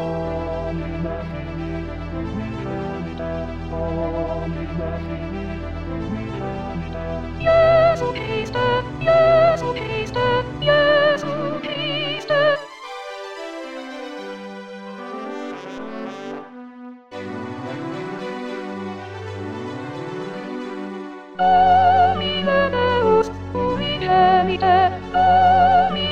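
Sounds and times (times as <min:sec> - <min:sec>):
soprano singing: 0:00.0 - 0:12.8, 0:21.3 - 0:26.1.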